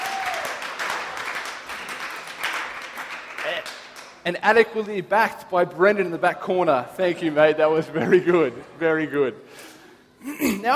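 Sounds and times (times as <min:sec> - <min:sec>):
audience applause: 0:00.0 - 0:04.2
speech: 0:03.5 - 0:09.6, 0:10.2 - 0:10.7.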